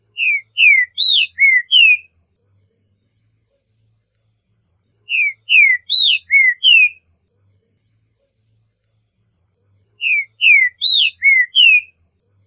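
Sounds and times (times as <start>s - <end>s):
trinca-ferro singing: 0.1s - 2.2s, 5.0s - 7.1s, 10.0s - 12.1s.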